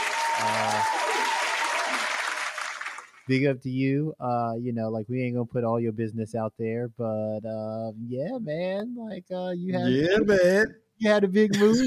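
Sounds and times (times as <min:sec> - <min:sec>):
applause sound effect: 0:00.0 - 0:03.3
speech: 0:03.3 - 0:11.8.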